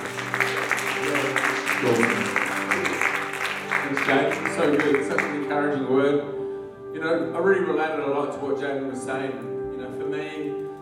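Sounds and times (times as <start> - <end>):
audience round of applause: 0.0 - 5.5
speech: 1.8 - 2.2, 4.6 - 6.4, 7.0 - 10.6.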